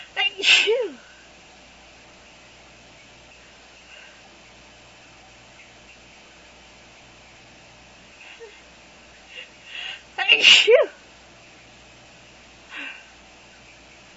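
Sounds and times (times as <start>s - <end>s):
woman with allergies: 0.0s - 1.2s, 9.3s - 11.0s.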